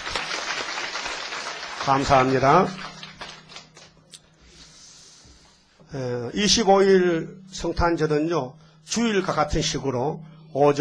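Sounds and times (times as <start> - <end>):
audience applauding new members: 0.0 - 4.0
speech: 1.8 - 2.8, 5.9 - 10.7.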